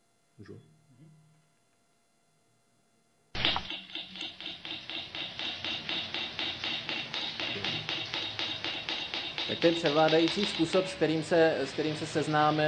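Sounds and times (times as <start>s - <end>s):
speech: 0.4s - 0.8s, 9.6s - 12.6s
traditional Polynesian tattooing taps: 3.4s - 12.6s.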